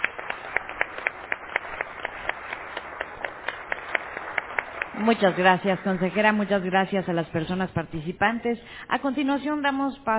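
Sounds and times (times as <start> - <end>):
audience applause: 0.0 - 7.2
speech: 5.0 - 10.1.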